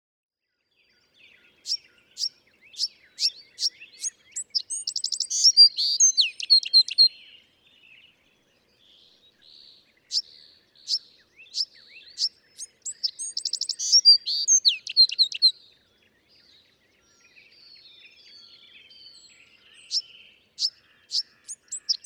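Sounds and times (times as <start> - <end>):
Bewick's wren singing: 1.0 - 22.0.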